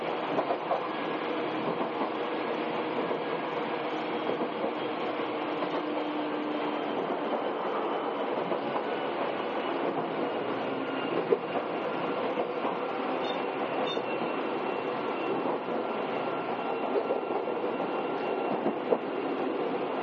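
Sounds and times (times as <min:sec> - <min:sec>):
Izukyu 8000 series train carriage rumble between Izukyu-Shimoda and Ito: 0:00.0 - 0:20.0
thin squeal: 0:13.2 - 0:15.5.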